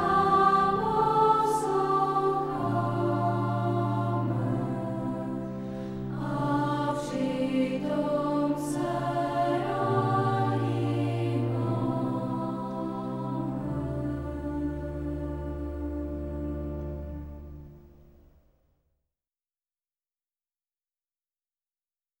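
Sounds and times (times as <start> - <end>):
hymn singing from a songbook: 0.0 - 17.7.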